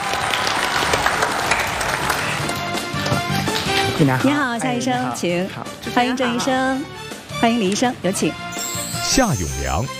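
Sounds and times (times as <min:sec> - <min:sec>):
audience applause: 0:00.0 - 0:02.7
speech: 0:04.0 - 0:09.9.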